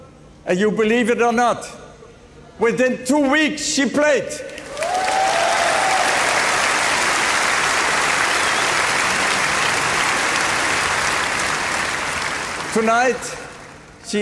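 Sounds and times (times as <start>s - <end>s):
speech: 0.5s - 1.8s, 2.6s - 4.9s, 12.8s - 13.4s, 14.1s - 14.2s
audience applause: 4.6s - 14.0s.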